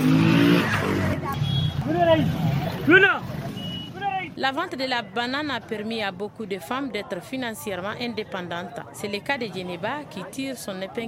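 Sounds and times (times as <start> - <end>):
engines droning and revving at a busy market: 0.0 - 4.4
people haggling and calling out at a market: 0.0 - 11.0
speech: 2.2 - 3.2, 4.4 - 11.0.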